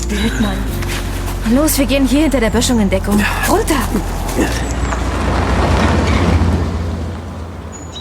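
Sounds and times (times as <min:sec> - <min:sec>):
speech: 0:00.1 - 0:04.8
hunter's car driving past: 0:02.4 - 0:07.9.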